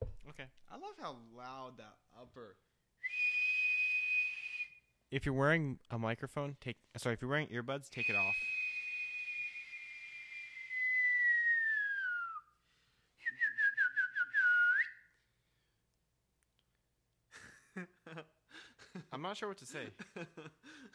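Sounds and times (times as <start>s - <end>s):
speech: 0.3s - 3.1s, 5.1s - 8.6s, 19.2s - 20.9s
person whistling like a bird: 3.0s - 4.8s, 8.0s - 12.6s, 13.2s - 15.2s.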